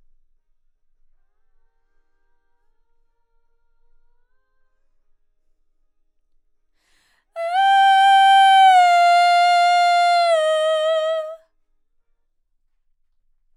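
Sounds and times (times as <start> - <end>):
vocal: 7.4 - 11.4.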